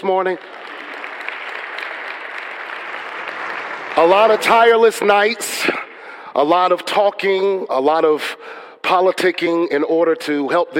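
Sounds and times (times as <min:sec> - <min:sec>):
speech: 0:00.0 - 0:00.7, 0:04.0 - 0:05.8, 0:06.4 - 0:10.7
audience hand clapping: 0:00.0 - 0:06.0.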